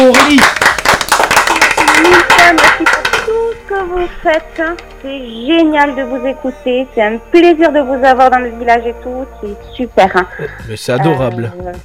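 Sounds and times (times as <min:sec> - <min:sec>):
audience applauding: 0:00.0 - 0:03.3
speech: 0:00.1 - 0:00.6, 0:04.1 - 0:11.8.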